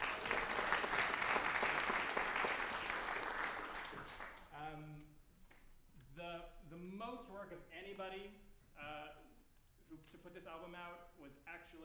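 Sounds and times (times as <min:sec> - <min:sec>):
round of applause: 0:00.0 - 0:04.5
speech: 0:07.4 - 0:09.2, 0:09.9 - 0:11.8.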